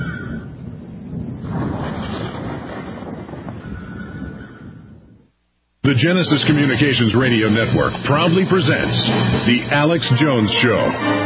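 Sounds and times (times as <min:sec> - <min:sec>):
storm wind: 0:00.0 - 0:11.2
speech: 0:05.9 - 0:11.2.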